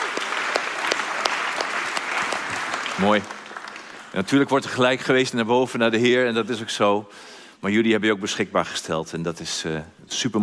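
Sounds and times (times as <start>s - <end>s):
church audience applause for the choir at a Sunday morning service: 0.0s - 4.9s
speech: 3.0s - 3.4s, 4.2s - 10.4s.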